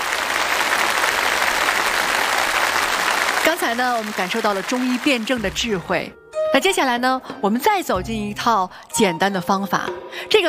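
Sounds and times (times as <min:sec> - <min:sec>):
audience applause: 0:00.0 - 0:05.5
speech: 0:03.5 - 0:10.4.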